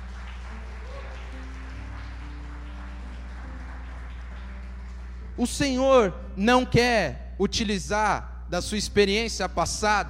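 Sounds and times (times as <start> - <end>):
audience clapping: 0.0 - 5.5
speech: 5.4 - 10.0.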